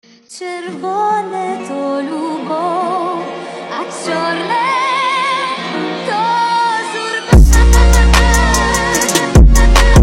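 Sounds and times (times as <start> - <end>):
trap remix: 2.4 - 10.0.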